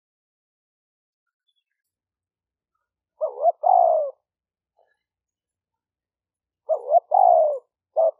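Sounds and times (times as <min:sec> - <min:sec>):
spotted dove cooing: 0:03.2 - 0:04.9, 0:06.6 - 0:08.1.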